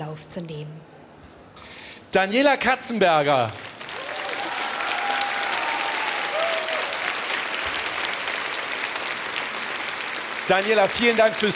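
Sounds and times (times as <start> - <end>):
speech: 0.0 - 1.0, 2.1 - 3.7, 10.5 - 11.5
audience applause: 3.4 - 11.5.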